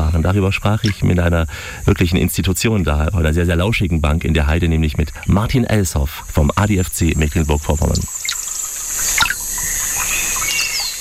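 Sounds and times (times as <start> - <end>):
steady high hiss near water: 0.0 - 10.9
speech: 0.2 - 8.3
birds chirping and calling on a heath: 4.9 - 10.9.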